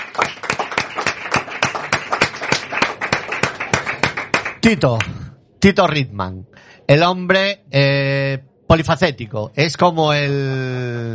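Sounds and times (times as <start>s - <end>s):
applause from a small group: 0.0s - 5.1s
speech: 4.6s - 11.1s.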